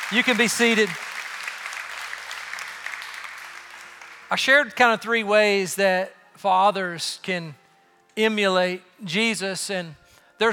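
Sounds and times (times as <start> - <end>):
audience clapping: 0.0 - 5.0
speech: 0.1 - 1.1, 4.3 - 7.6, 8.2 - 10.5.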